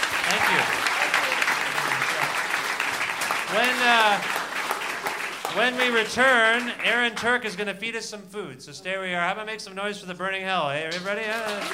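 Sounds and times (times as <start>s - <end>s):
audience applause: 0.0s - 7.5s, 10.9s - 11.7s
speech: 0.3s - 0.9s, 3.5s - 4.4s, 5.5s - 11.7s.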